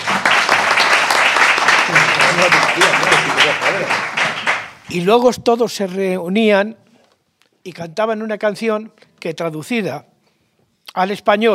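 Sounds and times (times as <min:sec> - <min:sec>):
audience applause: 0:00.0 - 0:04.8
speech: 0:02.4 - 0:04.1, 0:04.9 - 0:06.8, 0:07.6 - 0:10.1, 0:10.9 - 0:11.5.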